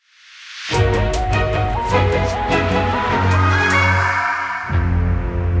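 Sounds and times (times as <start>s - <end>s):
victory jingle in 4-4 time: 0.8s - 5.5s.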